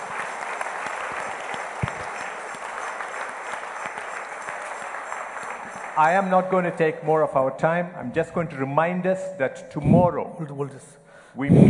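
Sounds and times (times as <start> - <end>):
audience clapping as a clap offering: 0.0 - 7.0
speech: 6.0 - 11.6.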